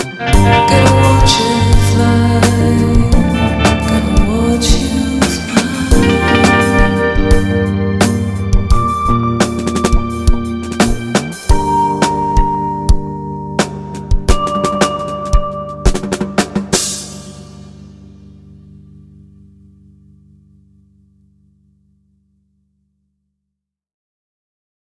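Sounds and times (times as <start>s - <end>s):
ambient sound: 0.4s - 19.6s.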